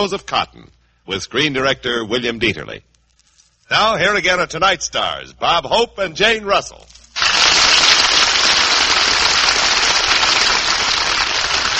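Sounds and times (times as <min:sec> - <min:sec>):
speech: 0:00.0 - 0:02.9, 0:03.7 - 0:07.0
audience applause: 0:07.2 - 0:11.7.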